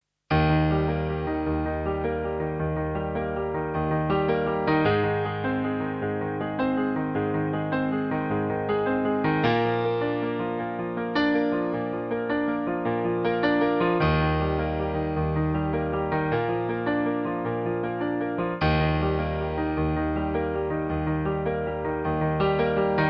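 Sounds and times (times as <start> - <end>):
piano: 0.3 - 23.0.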